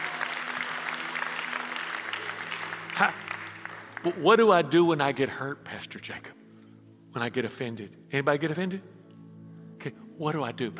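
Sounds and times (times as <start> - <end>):
audience clapping: 0.0 - 4.6
speech: 3.0 - 3.2, 4.0 - 6.4, 7.1 - 9.0, 9.8 - 10.7.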